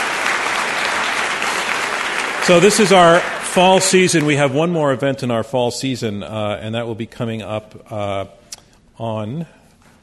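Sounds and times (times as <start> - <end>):
audience round of applause: 0.0 - 4.6
speech: 2.4 - 8.4, 9.0 - 9.6.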